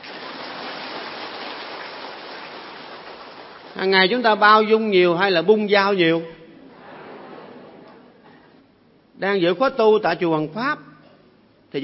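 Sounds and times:
large audience clapping at a Buddhist retreat at Hoằng Pháp pagoda: 0.0 - 3.8
speech: 3.8 - 6.4, 9.2 - 10.9.

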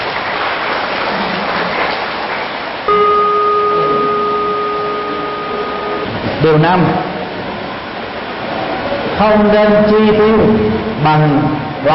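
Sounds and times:
big round of applause from an audience of children: 0.0 - 5.9
steady electronic tone: 2.9 - 7.3
speech: 6.4 - 7.1, 9.2 - 11.9.

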